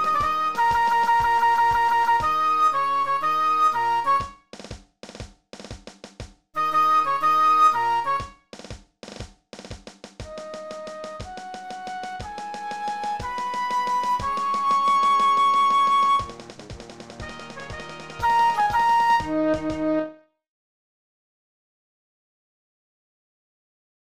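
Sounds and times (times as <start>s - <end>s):
flute: 0.0s - 4.4s, 6.6s - 8.4s, 10.3s - 20.2s.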